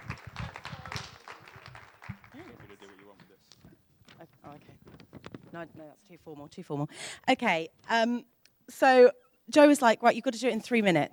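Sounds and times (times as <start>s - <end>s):
crowd applauding steadily: 0.0s - 3.6s
speech: 5.6s - 11.1s.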